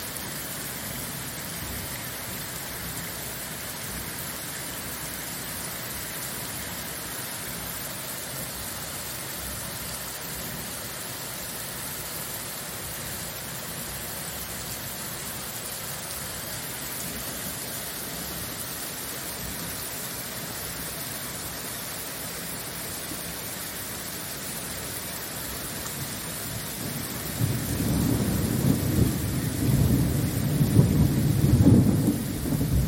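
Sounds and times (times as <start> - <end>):
thunderstorm rain hiss: 0.0 - 32.8
deep rolling thunder: 26.8 - 32.8.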